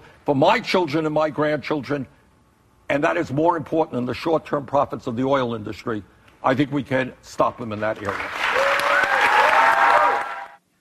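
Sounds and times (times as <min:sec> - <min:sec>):
speech: 0:00.2 - 0:02.2, 0:02.9 - 0:08.4
audience clapping in a played video clip: 0:07.7 - 0:10.6.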